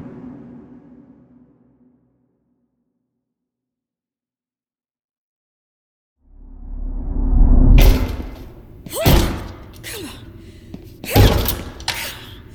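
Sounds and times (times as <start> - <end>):
heavy thuds pounding against a door: 7.8 - 9.8, 10.8 - 12.0
strained vocal grunts or gasps: 8.9 - 12.5.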